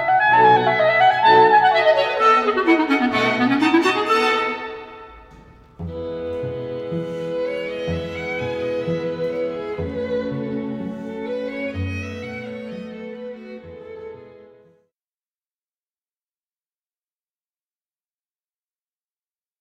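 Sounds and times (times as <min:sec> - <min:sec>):
clarinet first movement: 0:00.0 - 0:14.5.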